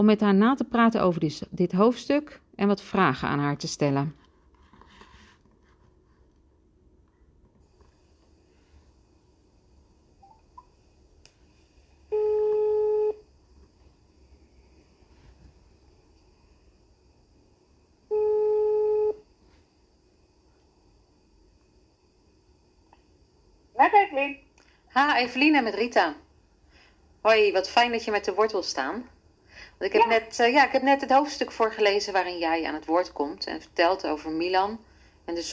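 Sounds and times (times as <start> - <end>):
speech: 0.0 - 4.2, 25.0 - 26.2, 27.2 - 29.2, 29.8 - 35.5
faint hiss: 0.1 - 35.5
telephone ringback tone from a phone call: 12.1 - 13.2, 18.1 - 19.2.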